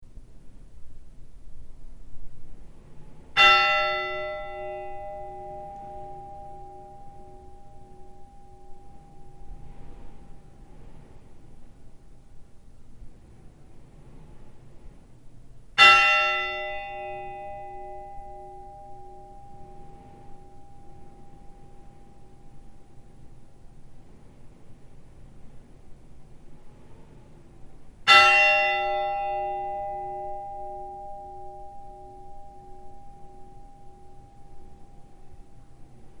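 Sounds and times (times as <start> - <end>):
Thingeyrakirkja funeral church bells ringing: 3.4 - 11.6, 15.8 - 23.9, 28.1 - 36.1.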